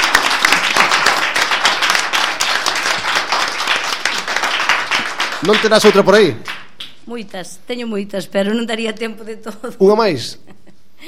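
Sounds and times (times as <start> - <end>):
audience applause: 0.0 - 6.9
speech: 5.4 - 6.5, 7.1 - 11.0.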